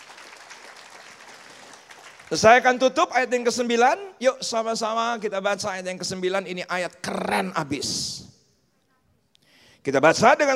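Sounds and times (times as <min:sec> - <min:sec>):
audience applause: 0:00.0 - 0:02.4
speech: 0:02.3 - 0:08.2, 0:09.8 - 0:10.5.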